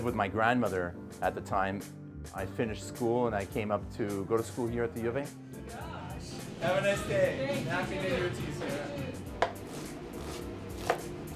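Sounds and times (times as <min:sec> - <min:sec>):
speech: 0:00.0 - 0:05.9, 0:06.6 - 0:09.0
knife chopping onion on a cutting board: 0:08.6 - 0:11.3.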